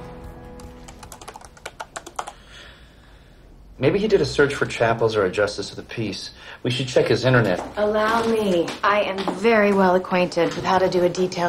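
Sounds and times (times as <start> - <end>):
typing on a computer keyboard: 0.6 - 2.4
speech: 3.8 - 11.4.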